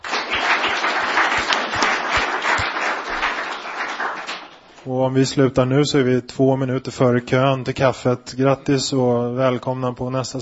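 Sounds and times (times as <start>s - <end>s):
audience applause: 0.0s - 4.8s
speech: 4.8s - 10.3s.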